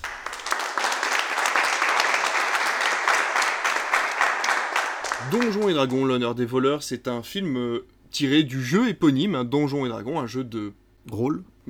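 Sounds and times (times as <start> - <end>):
crowd applause: 0.0 - 6.1
speech: 5.2 - 11.6.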